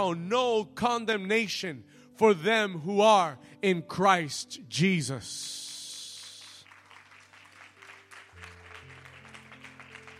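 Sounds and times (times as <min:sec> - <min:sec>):
speech: 0:00.0 - 0:05.6
crowd applause: 0:05.7 - 0:10.1.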